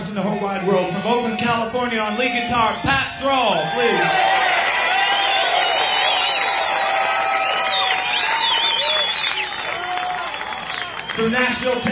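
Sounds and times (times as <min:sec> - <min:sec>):
speech: 0:00.2 - 0:04.4, 0:11.2 - 0:11.8
concert audience applause: 0:03.7 - 0:11.8.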